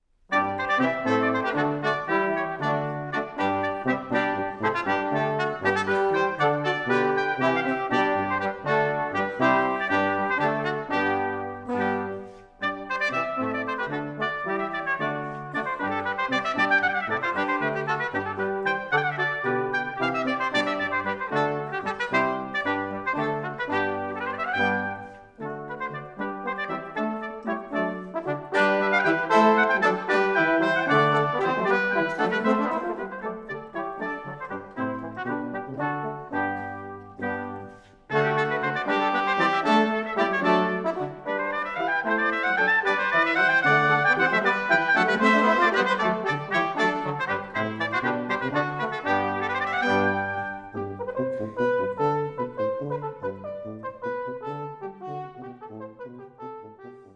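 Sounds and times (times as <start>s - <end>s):
brass instruments: 0.1s - 57.1s.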